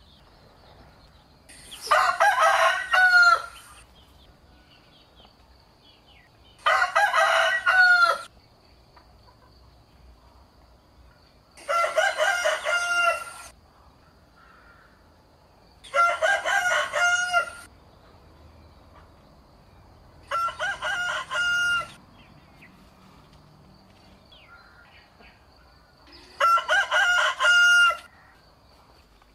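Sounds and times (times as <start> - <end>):
rooster crowing: 1.8 - 3.7, 6.6 - 8.3, 11.6 - 13.5, 15.9 - 17.7, 20.2 - 22.0, 26.2 - 28.4.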